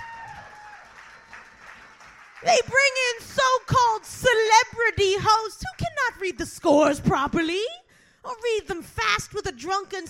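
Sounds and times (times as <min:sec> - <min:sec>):
audience applause: 0:00.0 - 0:02.5
speech: 0:02.4 - 0:10.0.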